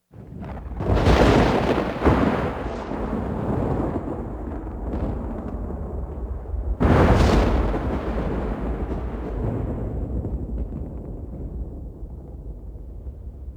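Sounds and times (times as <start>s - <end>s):
thunder: 0.2s - 13.5s.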